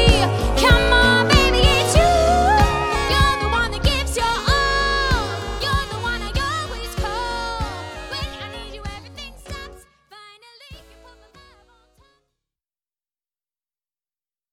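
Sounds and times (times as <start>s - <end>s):
rock pop band: 0.0s - 9.7s.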